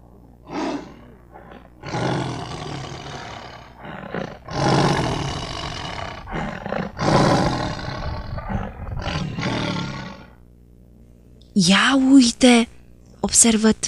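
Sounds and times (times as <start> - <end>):
monkey imitating a lion's roar: 0.2 - 10.4
speech: 11.6 - 13.8.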